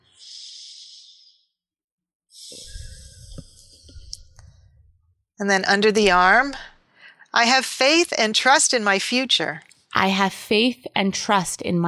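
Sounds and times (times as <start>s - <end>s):
deep breath during a guided affirmation session: 0.0s - 1.5s, 2.4s - 4.9s, 6.9s - 7.3s
speech: 5.4s - 6.7s, 7.3s - 11.8s.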